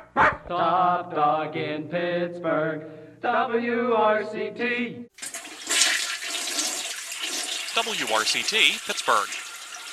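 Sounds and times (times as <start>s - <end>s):
speech: 0.5s - 5.2s, 7.8s - 9.4s
toilet flushing: 5.2s - 9.9s.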